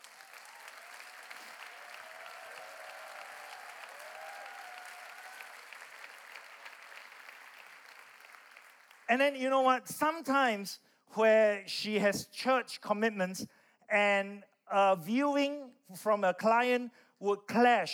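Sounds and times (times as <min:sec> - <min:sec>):
hand clapping: 0:00.0 - 0:09.1
speech: 0:09.1 - 0:17.9.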